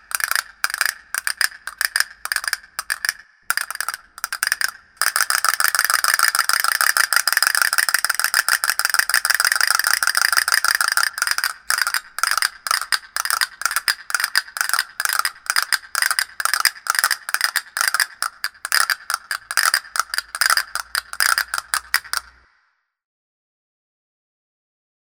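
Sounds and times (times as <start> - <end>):
castanets: 0.0 - 22.3.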